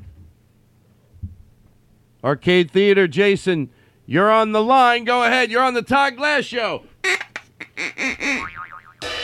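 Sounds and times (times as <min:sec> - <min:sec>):
speech: 0:02.2 - 0:07.2
boing sound effect: 0:08.0 - 0:09.0.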